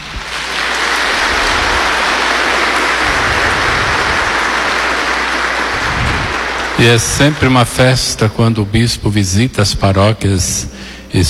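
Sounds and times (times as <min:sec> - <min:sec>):
applause: 0:00.0 - 0:08.4
speech: 0:06.8 - 0:11.2.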